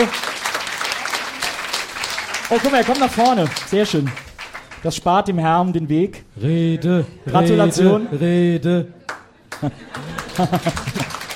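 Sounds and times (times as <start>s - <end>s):
speech: 0.0s - 0.3s, 2.5s - 9.0s, 9.6s - 11.0s
audience applause: 0.0s - 4.9s, 9.1s - 11.3s
laughter: 0.0s - 11.3s.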